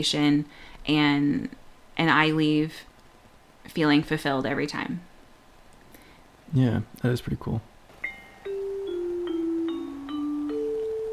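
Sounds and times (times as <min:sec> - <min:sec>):
speech: 0:00.0 - 0:02.9, 0:03.7 - 0:05.1, 0:06.5 - 0:07.7
bell ringing: 0:08.0 - 0:11.1.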